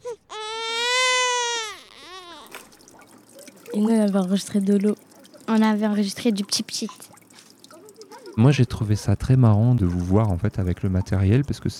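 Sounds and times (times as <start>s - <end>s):
baby crying: 0.0s - 2.6s
speech: 3.8s - 7.1s, 8.4s - 11.7s.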